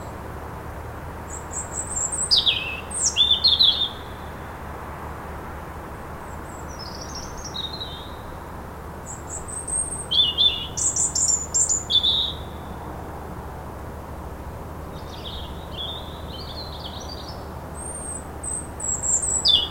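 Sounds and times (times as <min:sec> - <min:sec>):
European robin song: 0:01.3 - 0:04.4, 0:06.2 - 0:08.4, 0:09.0 - 0:12.8, 0:14.9 - 0:19.6.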